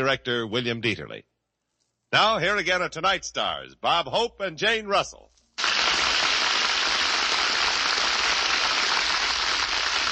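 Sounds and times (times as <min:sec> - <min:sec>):
speech: 0:00.0 - 0:01.3, 0:02.1 - 0:05.3
audience applause: 0:05.6 - 0:10.0.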